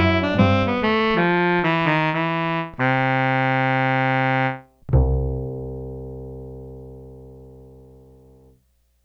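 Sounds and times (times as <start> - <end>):
saxophone: 0.0 - 4.8
upright bass: 0.0 - 8.5.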